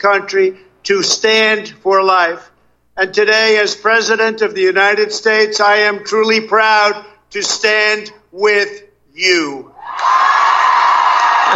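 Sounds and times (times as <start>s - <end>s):
speech: 0.0s - 10.5s
large crowd cheering at an outdoor pro-life rally: 9.7s - 11.5s.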